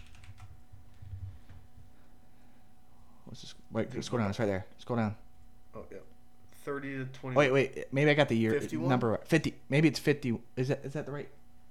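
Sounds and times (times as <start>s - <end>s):
typing on a computer keyboard: 0.0s - 0.6s
steady low hum: 0.0s - 11.6s
speech: 3.3s - 5.2s, 5.8s - 11.4s.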